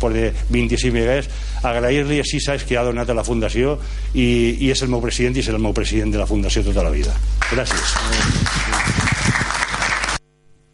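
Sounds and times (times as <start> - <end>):
speech: 0.0 - 8.7
applause at a meeting: 7.4 - 10.2.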